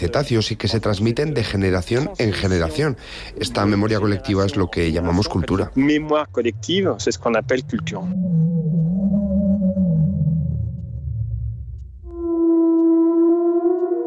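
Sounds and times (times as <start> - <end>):
speech: 0.0 - 9.7
humpback whale low-frequency vocalizations: 7.6 - 11.4, 12.1 - 14.0.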